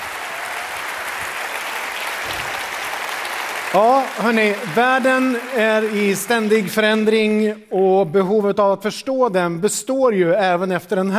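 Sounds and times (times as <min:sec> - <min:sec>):
theater audience applause: 0:00.0 - 0:07.3
speech: 0:03.7 - 0:11.1.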